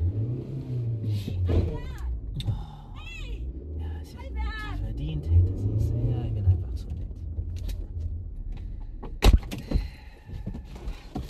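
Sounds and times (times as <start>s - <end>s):
car engine revving as car drives off: 0.0s - 8.9s
speech: 1.2s - 1.9s.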